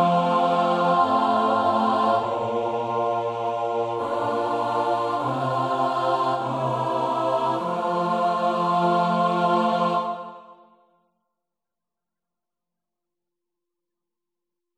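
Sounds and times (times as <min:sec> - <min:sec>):
full choir singing: 0:00.0 - 0:10.8.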